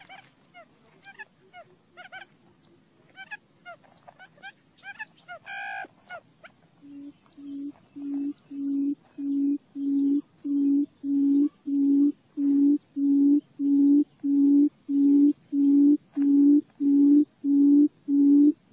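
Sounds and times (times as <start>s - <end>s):
quail producing a low booming hoot: 6.9s - 18.7s.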